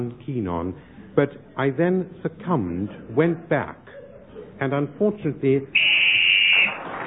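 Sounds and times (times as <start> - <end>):
speech: 0.0 - 4.0, 4.6 - 5.9
whistle blown to end a turn: 5.8 - 6.8.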